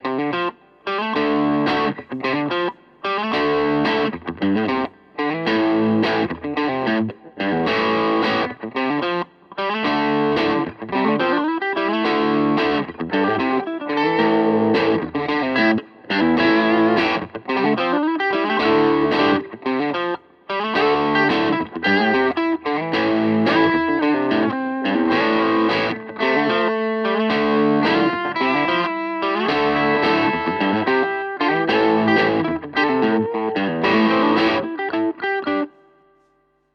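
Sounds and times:
Maybach and Harley Benton electric guitar comparison with crunch tone: 0.0 - 36.6.

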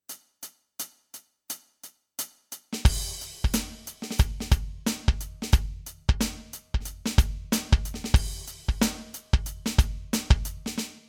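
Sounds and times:
Command Kit groove: 2.8 - 10.9.

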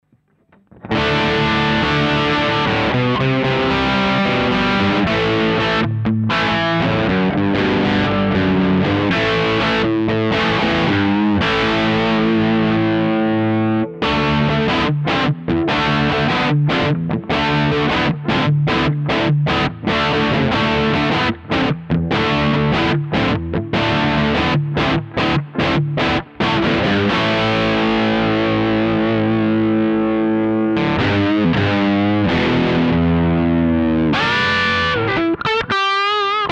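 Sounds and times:
overdrive channel direct input tone: 0.0 - 36.5.

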